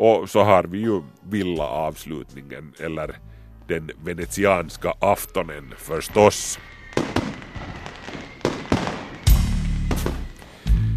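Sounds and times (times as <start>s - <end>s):
speech: 0.0s - 6.8s
fireworks rockets exploding: 5.7s - 10.7s.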